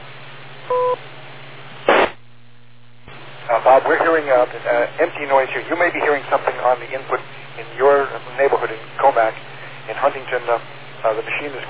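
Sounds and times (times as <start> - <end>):
beep: 0.7 - 1.0
speech: 3.5 - 11.6.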